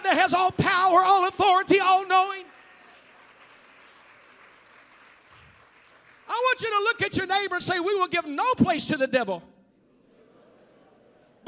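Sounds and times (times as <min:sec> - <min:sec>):
speech: 0:00.2 - 0:02.5, 0:06.4 - 0:09.5
audience clapping hands: 0:01.8 - 0:07.0.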